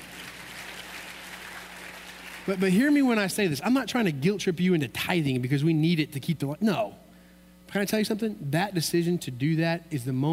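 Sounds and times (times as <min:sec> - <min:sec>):
crowd applause: 0:00.0 - 0:03.0
speech: 0:02.4 - 0:07.0, 0:07.7 - 0:10.3.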